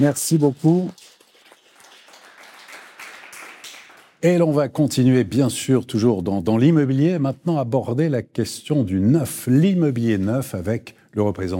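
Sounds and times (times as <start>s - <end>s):
speech: 0.0s - 1.1s, 4.2s - 11.5s
audience applause: 0.0s - 4.2s.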